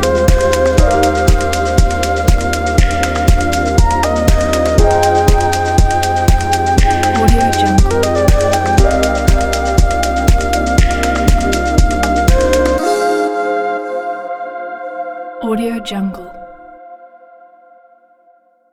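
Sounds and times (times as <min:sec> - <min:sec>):
summer lounge house music: 0:00.0 - 0:14.2.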